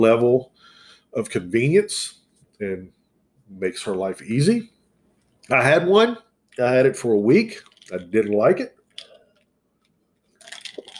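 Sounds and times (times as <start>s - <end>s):
speech: 0.0s - 0.5s, 1.1s - 4.7s, 5.5s - 8.8s
person sipping tea: 8.9s - 9.5s, 10.4s - 10.9s.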